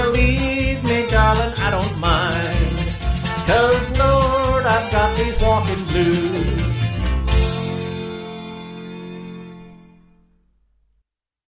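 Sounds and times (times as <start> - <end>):
mainstream square dance song with vocals: 0.0 - 8.6.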